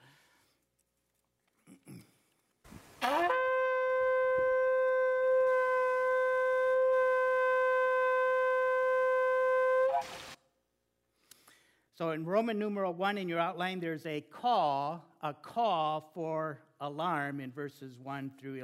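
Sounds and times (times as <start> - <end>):
shofar ram's horn trumpet being blown: 3.0 - 10.4
speech: 12.0 - 18.6.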